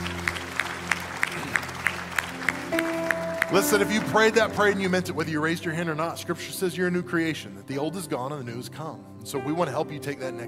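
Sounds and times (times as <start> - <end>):
audience applause: 0.0 - 4.8
speech: 3.5 - 10.4.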